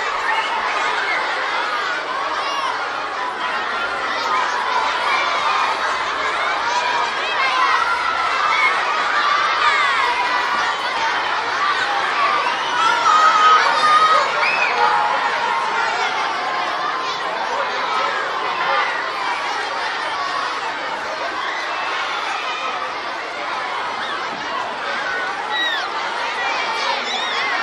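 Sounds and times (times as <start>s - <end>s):
crowd: 0.0s - 27.6s.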